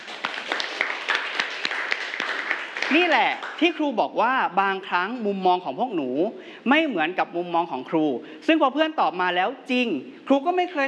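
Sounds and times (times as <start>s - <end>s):
children clapping in a classroom: 0.0s - 3.6s
speech: 2.9s - 10.8s.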